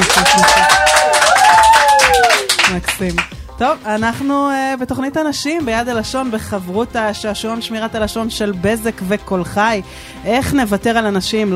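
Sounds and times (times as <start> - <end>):
group of women clapping their hands at a quiz show: 0.0 - 3.4
speech: 3.0 - 11.5.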